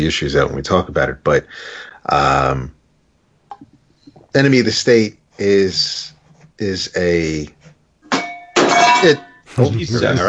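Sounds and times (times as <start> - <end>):
speech: 0.0 - 2.8, 4.3 - 7.6, 9.0 - 10.2
coffee cup knocked over on table: 8.1 - 9.2.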